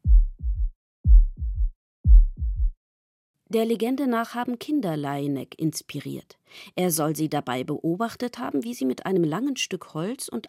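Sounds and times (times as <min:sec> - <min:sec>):
heartbeat heard through a stethoscope: 0:00.0 - 0:02.8
speech: 0:03.5 - 0:10.4.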